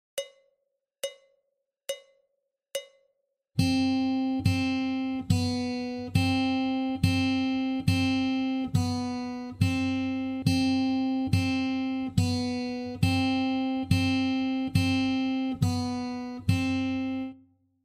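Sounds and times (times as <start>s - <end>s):
guitar warm-up in high C: 3.6s - 17.4s.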